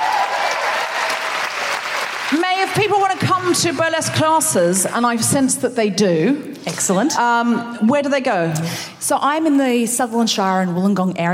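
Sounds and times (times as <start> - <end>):
audience applause: 0.0 - 3.6
speech: 2.6 - 11.3.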